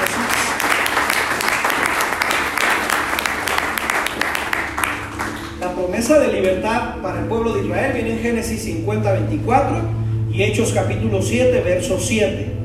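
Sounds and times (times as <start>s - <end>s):
audience applauding loudly: 0.0s - 5.6s
speech: 6.0s - 12.5s.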